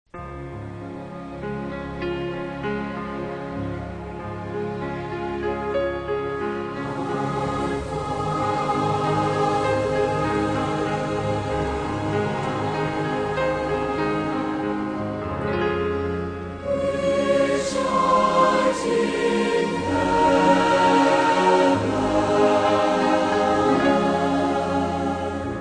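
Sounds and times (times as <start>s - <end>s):
orchestra playing: 0.7s - 25.6s
choir singing: 4.4s - 25.6s.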